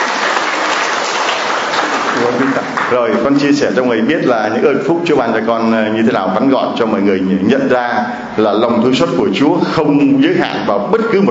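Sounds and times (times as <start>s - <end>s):
church gathering applause welcoming a visitor from New Orleans in America: 0.0s - 3.5s
speech: 2.2s - 11.3s.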